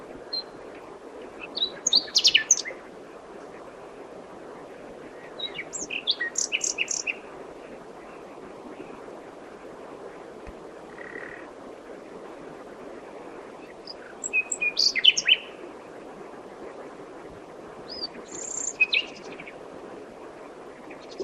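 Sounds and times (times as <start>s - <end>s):
common nightingale Luscinia megarhynchos singing: 1.4s - 2.8s, 5.3s - 7.2s, 13.6s - 15.5s, 17.9s - 19.5s.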